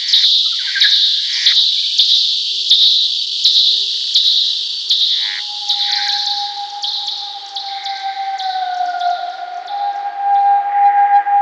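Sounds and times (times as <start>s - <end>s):
bat calls with falling sweeps at night: 0.1s - 11.2s.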